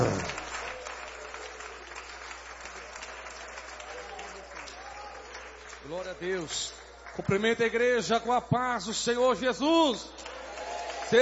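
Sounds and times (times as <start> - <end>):
church audience applauding: 0.0 - 7.5, 10.2 - 11.2
speech: 6.0 - 10.3.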